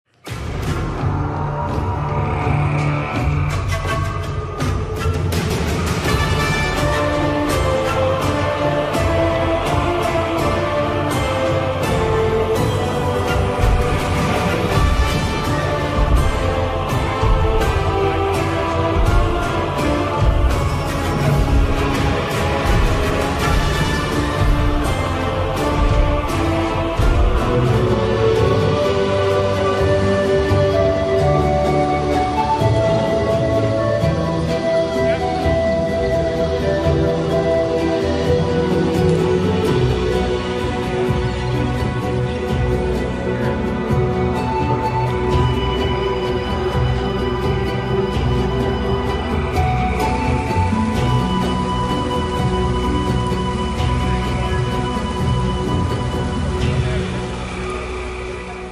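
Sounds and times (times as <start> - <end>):
music: 0.0 - 58.7.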